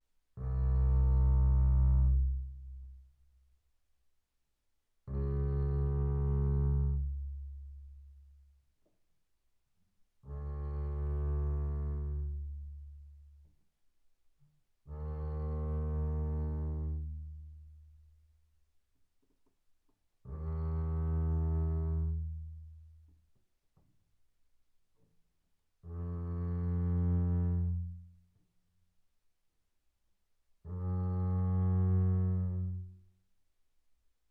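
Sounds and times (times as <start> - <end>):
double bass bowed on the E string mezzo forte C2 to B2: 0.4 - 3.1, 5.1 - 8.4, 10.2 - 13.5, 14.9 - 17.9, 20.3 - 23.1, 25.8 - 28.2, 30.7 - 33.1.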